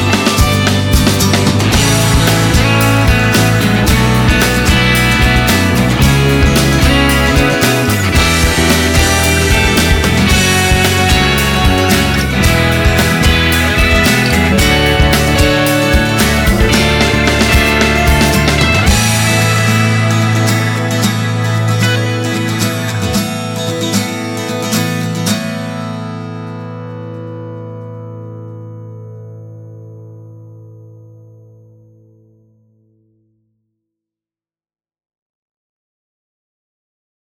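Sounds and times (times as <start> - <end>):
pop rock music: 0.0 - 28.8.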